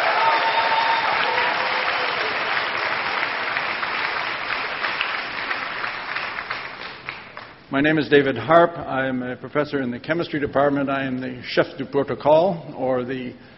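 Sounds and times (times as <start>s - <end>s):
audience applause: 0.0s - 7.6s
speech: 7.7s - 13.5s.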